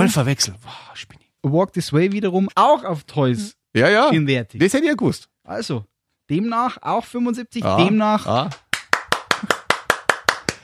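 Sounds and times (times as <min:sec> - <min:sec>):
speech: 0:00.1 - 0:08.6
hand clapping: 0:08.4 - 0:10.6.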